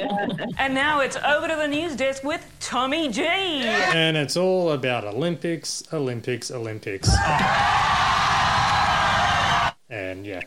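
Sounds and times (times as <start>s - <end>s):
speech: 0.0s - 8.0s, 10.0s - 10.4s
audience foot stomping: 7.0s - 8.0s
audience cheering: 7.0s - 9.8s.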